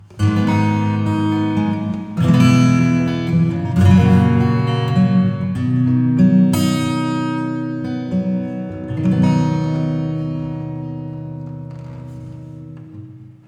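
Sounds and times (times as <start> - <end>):
acoustic reverb: 0.0 - 13.4.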